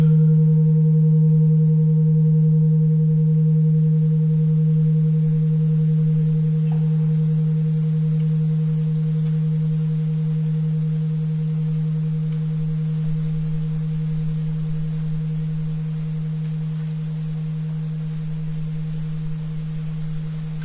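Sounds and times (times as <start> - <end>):
steady low tone at 77.4 Hz: 0.0 - 20.6
soft hiss: 5.0 - 20.6.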